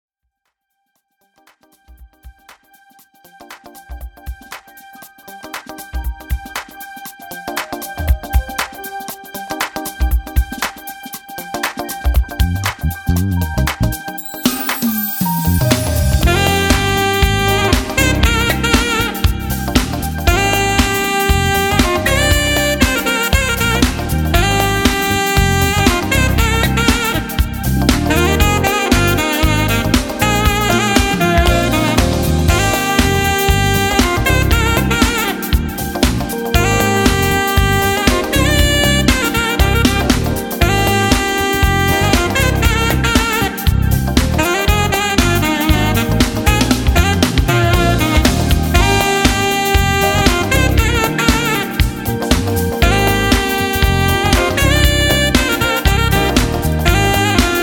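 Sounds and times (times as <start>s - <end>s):
instrumental music: 0.6s - 57.6s.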